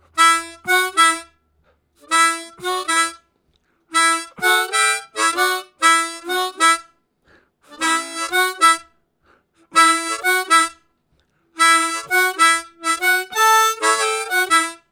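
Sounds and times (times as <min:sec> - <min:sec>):
harmonica riffs: 0:00.1 - 0:01.4, 0:02.0 - 0:03.2, 0:03.9 - 0:06.9, 0:07.7 - 0:08.9, 0:09.7 - 0:10.8, 0:11.6 - 0:14.9.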